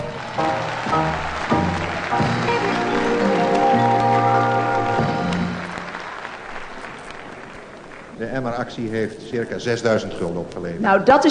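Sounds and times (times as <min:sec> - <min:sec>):
audience applause: 0:00.0 - 0:09.0
speech: 0:08.4 - 0:11.2.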